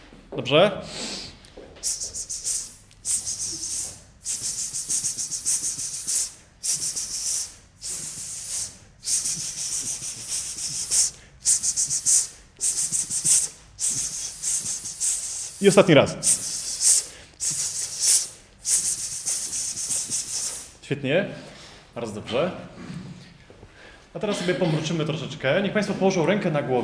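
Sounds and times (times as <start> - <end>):
speech: 0.3 - 1.2, 15.6 - 16.4, 20.9 - 22.8, 24.2 - 26.8
people hissing a steady S sound: 0.9 - 20.8.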